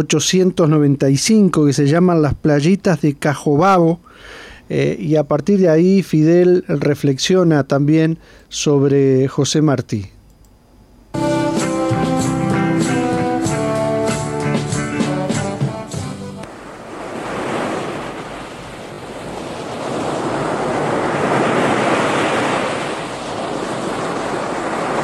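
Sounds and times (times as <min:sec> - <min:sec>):
speech: 0:00.0 - 0:10.2
tonal music: 0:11.2 - 0:16.5
ocean waves breaking on a beach at Playitas de Cajobabo, Cuba: 0:16.4 - 0:25.0
wind noise: 0:16.4 - 0:25.0.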